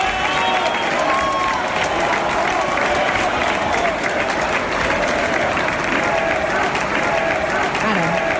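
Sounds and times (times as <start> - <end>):
audience applause: 0.0 - 8.3
crowd shouting: 0.0 - 8.3
scattered whistles: 0.2 - 1.3.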